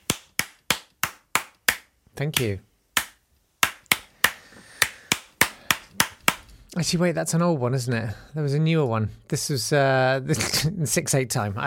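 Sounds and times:
recorded listener clapping: 0.1 - 5.6
speech: 2.2 - 2.7, 6.8 - 11.6.

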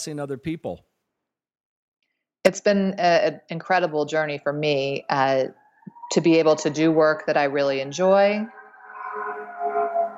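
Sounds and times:
speech: 0.0 - 0.9, 2.5 - 8.6
sirens passing by in the city: 4.6 - 10.1.

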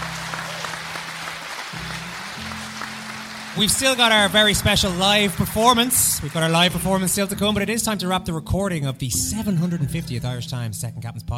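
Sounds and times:
audience applause: 0.0 - 7.4
low sustained musical drone: 0.0 - 7.6
speech: 3.6 - 11.3.

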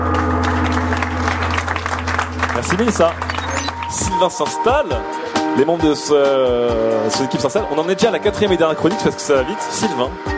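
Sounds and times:
audience applause: 0.0 - 4.3
speech: 2.6 - 3.3, 3.9 - 10.3.

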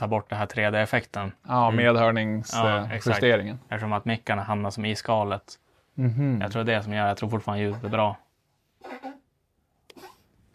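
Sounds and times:
speech: 0.0 - 8.2
small old dog coughing: 8.8 - 9.2, 9.9 - 10.3.

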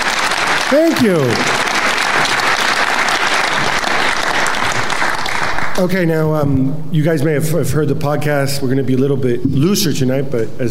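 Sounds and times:
audience applause: 0.0 - 5.8
speech: 0.7 - 1.6, 5.8 - 10.6.

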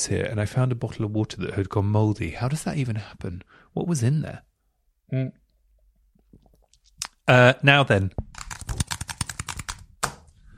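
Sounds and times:
speech: 0.0 - 4.5, 5.1 - 5.4, 7.3 - 8.3
tapping on a computer keyboard: 8.2 - 10.3.

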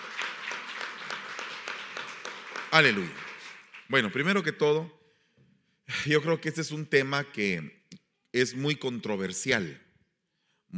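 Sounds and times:
audience applause: 0.0 - 4.4
speech: 2.7 - 3.2, 3.9 - 5.0, 5.9 - 7.8, 8.4 - 9.8.

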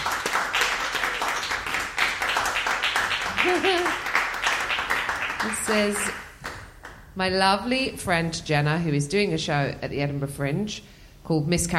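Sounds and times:
crowd applause welcoming a podcast guest: 0.0 - 6.7
speech: 3.4 - 4.1, 5.4 - 6.2, 7.2 - 11.7.

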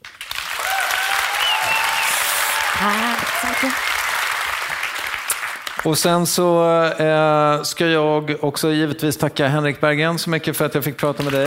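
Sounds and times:
audience applause: 0.0 - 5.9, 11.2 - 11.4
speech: 2.8 - 4.0, 5.8 - 11.4.

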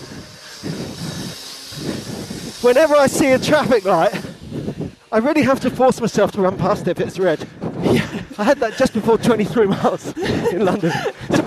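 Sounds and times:
power saw grinding through pavement: 0.0 - 6.9
speech: 2.6 - 4.3, 5.1 - 11.4
laughter: 7.8 - 11.4.

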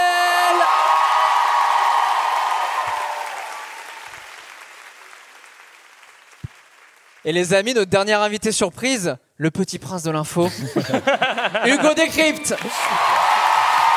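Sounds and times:
live show audience cheering: 0.0 - 4.8, 11.7 - 13.9
live show audience giving thunderous applause for a guest: 0.5 - 7.3, 11.7 - 13.9
speech: 7.2 - 13.2
laughter: 10.4 - 13.1.

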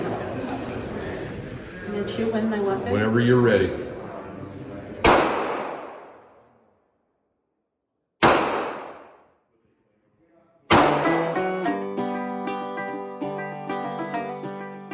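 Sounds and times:
speech: 2.0 - 3.9
gunshots at an outdoor gun range: 5.0 - 6.3, 8.2 - 9.3, 10.7 - 11.4
sustained tonal musical passage: 10.7 - 14.9.

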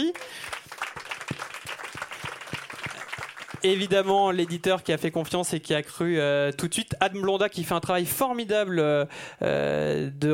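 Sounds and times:
audience applause: 0.0 - 4.9
speech: 3.6 - 10.3.

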